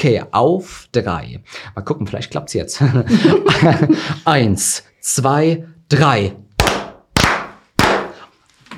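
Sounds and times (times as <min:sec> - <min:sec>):
speech: 0:00.0 - 0:06.4
laughter: 0:02.8 - 0:04.3
group clapping in unison: 0:06.6 - 0:08.2.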